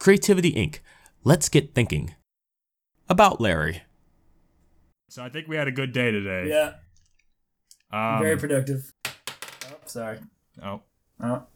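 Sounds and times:
speech: 0.0 - 2.2, 3.1 - 3.9, 5.1 - 6.8, 7.9 - 9.0, 9.9 - 11.5
objects being knocked off a desk: 9.1 - 9.9.

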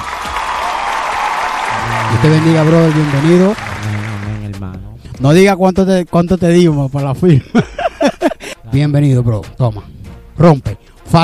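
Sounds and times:
crowd applause: 0.0 - 4.6
laughter: 1.7 - 2.5, 7.3 - 8.6
speech: 2.2 - 4.0, 4.8 - 7.8, 8.7 - 11.2.

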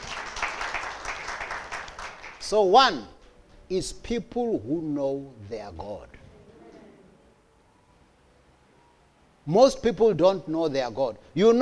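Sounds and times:
crowd applause: 0.0 - 2.4
speech: 2.5 - 3.1, 3.7 - 6.2, 9.5 - 11.5.

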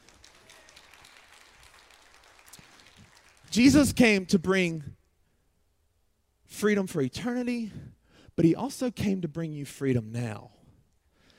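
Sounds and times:
audience applause: 0.0 - 3.6
speech: 3.6 - 5.0, 6.6 - 7.8, 8.4 - 10.6.

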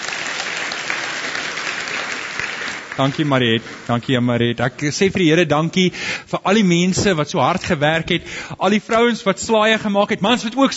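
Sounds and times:
audience applause: 0.0 - 4.2
speech: 3.0 - 10.7.

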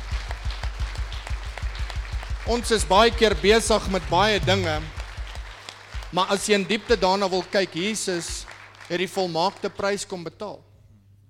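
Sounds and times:
low thumping beat: 0.0 - 6.2
audience clapping in rhythm: 0.0 - 10.5
constant hum: 1.3 - 5.4
speech: 2.5 - 5.0, 6.1 - 10.7.

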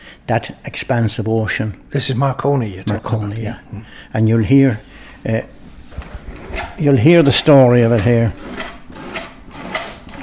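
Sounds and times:
speech: 0.3 - 5.6, 6.8 - 8.7
old gramophone being wound up: 6.3 - 10.2.

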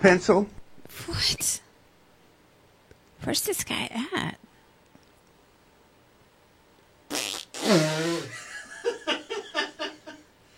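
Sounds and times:
speech: 0.0 - 1.6, 3.2 - 4.4, 7.6 - 8.4
fart: 7.1 - 8.4.

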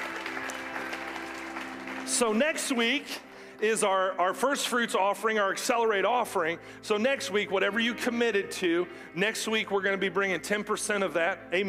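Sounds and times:
audience applauding: 0.0 - 3.2
speech: 2.1 - 11.6.

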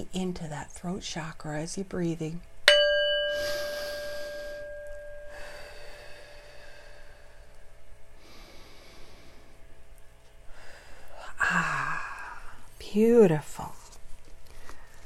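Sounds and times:
speech: 0.2 - 2.5, 12.9 - 13.8
singing bowl ringing: 2.7 - 6.6.

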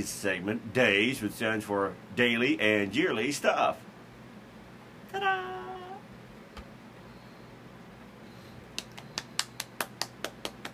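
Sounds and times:
speech: 0.0 - 3.9
half-hearted fake applause claps or snaps: 8.7 - 10.7.

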